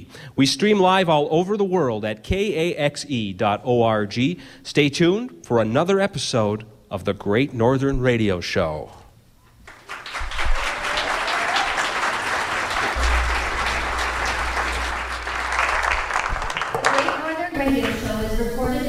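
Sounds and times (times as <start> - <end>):
speech: 0.2 - 9.0
live studio audience applause: 9.7 - 18.0
whoops and shouts: 10.5 - 12.0.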